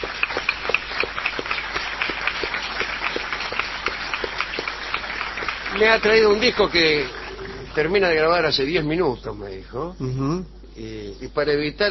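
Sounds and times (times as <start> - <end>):
audience applause greeting a guest: 0.0 - 8.2
speech: 5.8 - 7.2, 7.8 - 11.8.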